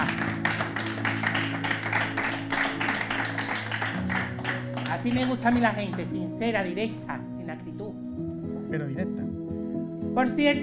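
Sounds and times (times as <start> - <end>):
applause: 0.0 - 6.2
speech: 5.0 - 8.1, 8.7 - 9.2, 10.2 - 10.6.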